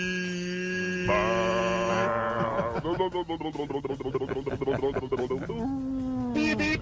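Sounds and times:
person imitating a car horn with the mouth: 0.0 - 2.6, 6.2 - 6.7
laughter: 1.6 - 5.8.

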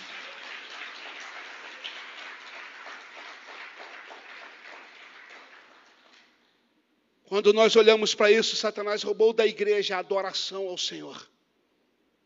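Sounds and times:
applause: 0.0 - 6.4
speech: 7.3 - 11.3.

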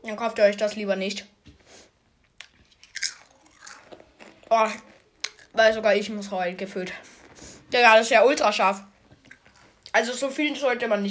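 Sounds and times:
speech: 0.1 - 1.4, 4.5 - 4.9, 5.6 - 7.1, 7.7 - 8.9, 10.0 - 11.0
crunching on nachos: 2.2 - 5.6, 9.0 - 10.0.

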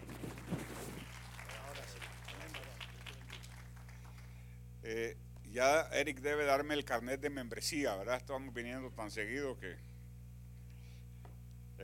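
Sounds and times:
audience applause: 0.0 - 4.3
low steady hum: 0.0 - 11.8
speech: 4.8 - 9.9.

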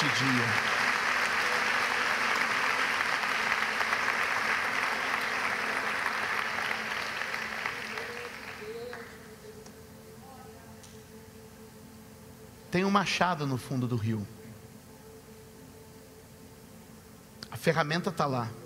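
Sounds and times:
loud audience applause: 0.0 - 9.2
speech: 12.8 - 14.4, 17.6 - 18.6.

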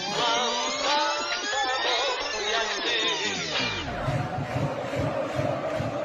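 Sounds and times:
large stadium crowd cheering and shouting: 0.2 - 6.0.

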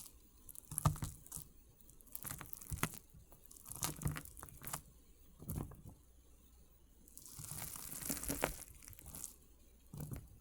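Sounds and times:
water beads being crushed: 0.0 - 4.8, 7.2 - 9.4.

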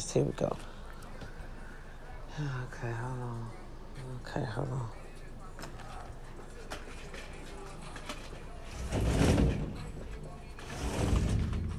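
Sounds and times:
speech: 0.1 - 0.7, 2.4 - 5.0
sliding window being shut at home: 8.7 - 9.8, 10.6 - 11.7.

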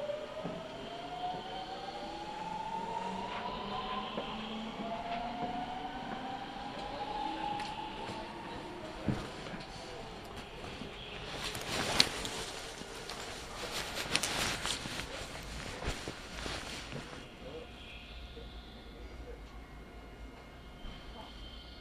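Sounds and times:
Nankai Line local train riding from Izumisano toward Hakotsukuri: 0.0 - 21.4.

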